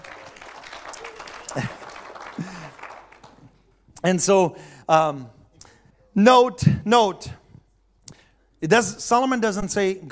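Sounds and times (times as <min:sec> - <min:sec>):
audience clapping hands: 0:00.0 - 0:03.7
speech: 0:01.5 - 0:01.8, 0:04.0 - 0:05.4, 0:06.2 - 0:07.4, 0:08.6 - 0:10.1.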